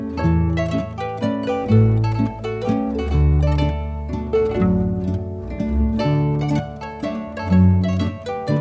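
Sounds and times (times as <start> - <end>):
landler dance music: 0.2 - 8.5.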